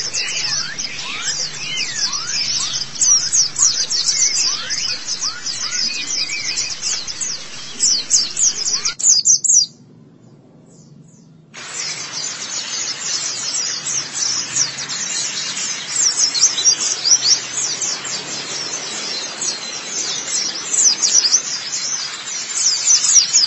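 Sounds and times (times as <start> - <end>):
white-eye twittering: 0.0 - 9.3, 11.6 - 23.4.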